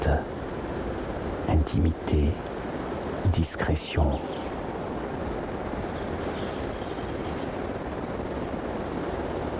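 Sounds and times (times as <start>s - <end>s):
speech: 0.0s - 0.3s, 1.5s - 2.5s, 3.2s - 4.4s
high-pitched insect chirping: 0.0s - 9.5s.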